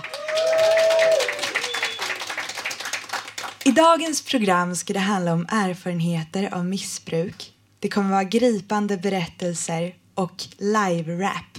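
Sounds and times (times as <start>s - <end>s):
whoop or whistle: 0.0s - 2.2s
crowd clapping and cheering: 0.0s - 3.7s
speech: 3.8s - 11.5s.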